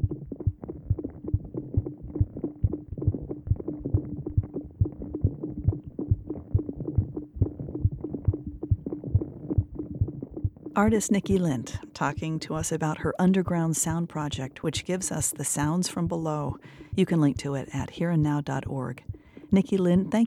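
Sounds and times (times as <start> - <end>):
water dripping from thawing icicles: 0.0 - 20.2
speech: 10.8 - 20.2.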